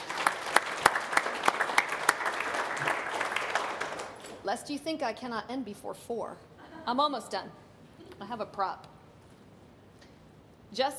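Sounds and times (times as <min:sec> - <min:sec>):
audience applause: 0:00.0 - 0:04.2
speech: 0:04.5 - 0:07.6, 0:08.2 - 0:08.9, 0:10.7 - 0:10.9.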